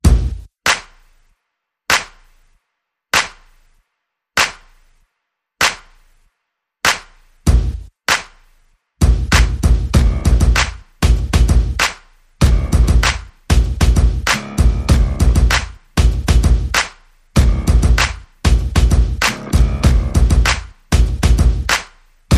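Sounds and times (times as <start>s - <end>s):
percussion: 0.0s - 3.8s, 5.6s - 22.3s
bass: 9.0s - 22.3s.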